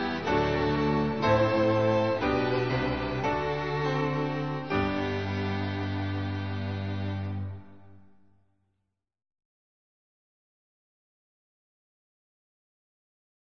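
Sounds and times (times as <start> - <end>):
instrumental hymn: 0.0 - 8.2.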